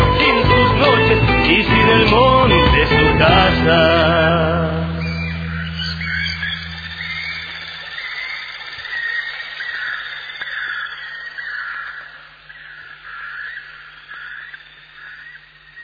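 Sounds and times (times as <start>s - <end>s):
low steady hum: 0.0s - 15.8s
birds squawking and chattering: 5.0s - 15.8s.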